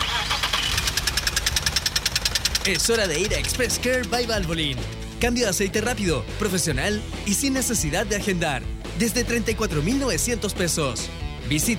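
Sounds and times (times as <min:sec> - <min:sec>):
car engine making a troubled noise: 0:00.0 - 0:07.3
speech: 0:02.6 - 0:11.7.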